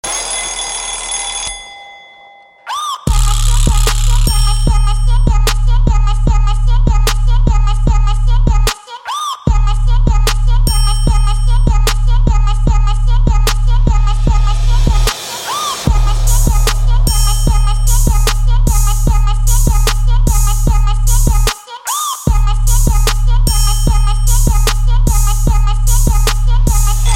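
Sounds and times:
trap beat: 2.8s - 27.1s.

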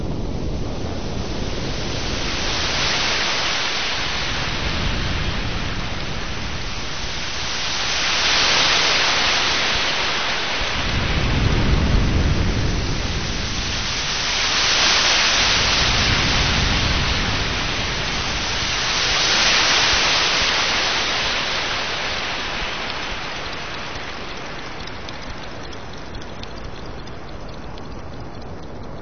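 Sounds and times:
sea noise: 0.0s - 29.0s.

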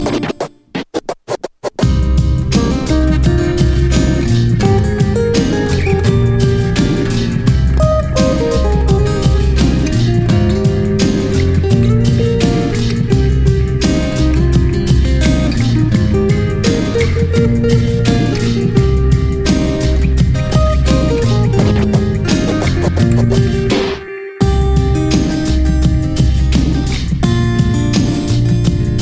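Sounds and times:
acoustic music: 0.0s - 0.8s, 1.8s - 29.0s.

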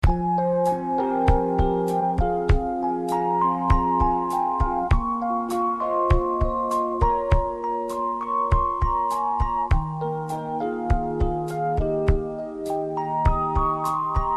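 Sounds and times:
soft ringtone: 0.0s - 14.3s.

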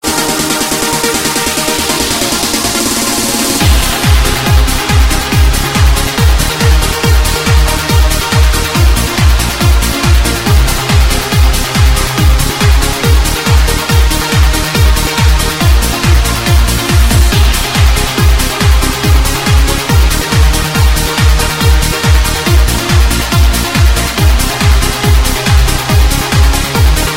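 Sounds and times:
trance music: 0.0s - 27.1s.

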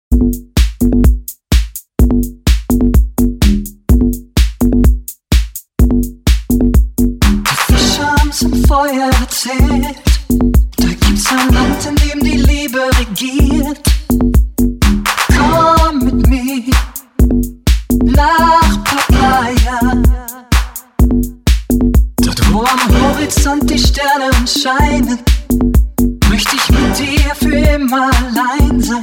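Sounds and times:
electro beat: 0.1s - 29.0s.

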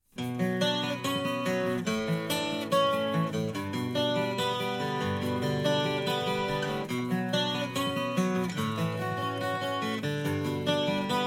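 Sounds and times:
acoustic music: 0.1s - 11.2s.

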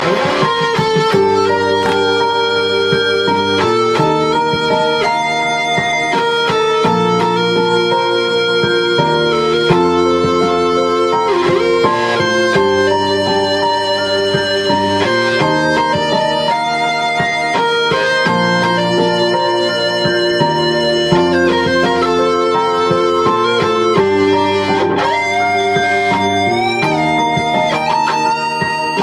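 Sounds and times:
guitar solo: 0.0s - 29.0s.

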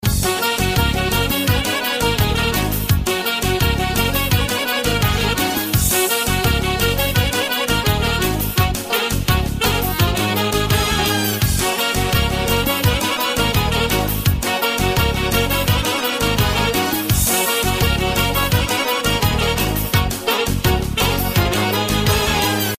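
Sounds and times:
turbo folk music: 0.0s - 22.7s.

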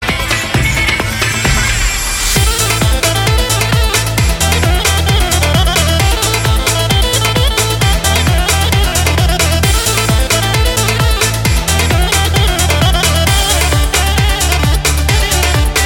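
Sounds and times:
pop-folk ringtone: 0.1s - 15.8s.

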